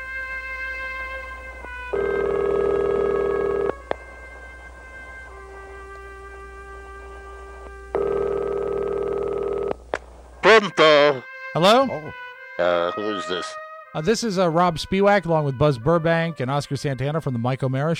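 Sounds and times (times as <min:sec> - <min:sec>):
Skype outgoing call ringtone: 0:01.9 - 0:03.8, 0:08.0 - 0:09.8
speech: 0:10.6 - 0:17.9.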